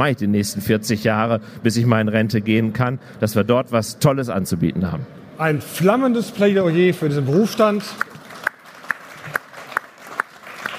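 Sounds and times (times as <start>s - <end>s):
speech: 0.0s - 8.1s
applause: 7.6s - 10.7s.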